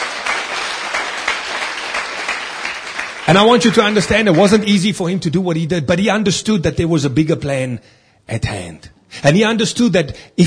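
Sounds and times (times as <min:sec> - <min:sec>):
audience clapping hands: 0:00.0 - 0:04.8
speech: 0:03.3 - 0:10.4.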